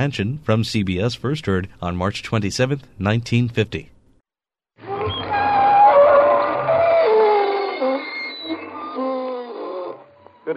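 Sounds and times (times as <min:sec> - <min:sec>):
speech: 0:00.0 - 0:03.9
creaking door sound effect: 0:04.8 - 0:10.5.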